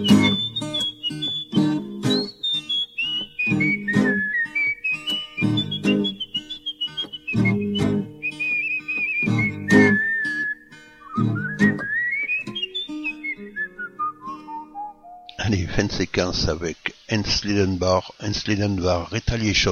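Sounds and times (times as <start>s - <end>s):
blues melody whistled in a clear bright tone: 0.0s - 15.4s
speech: 16.2s - 19.7s.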